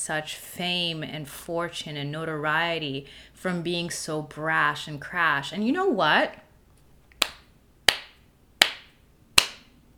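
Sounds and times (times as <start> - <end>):
speech: 0.0 - 6.4
slow hand clapping: 7.2 - 9.7.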